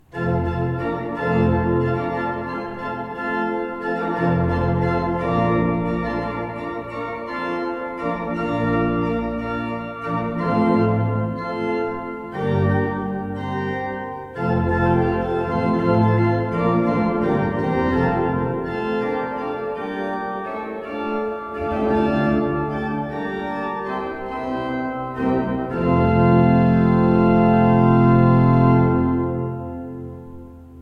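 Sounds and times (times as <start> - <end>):
used Beckerath pipe organ: 0.0 - 30.8.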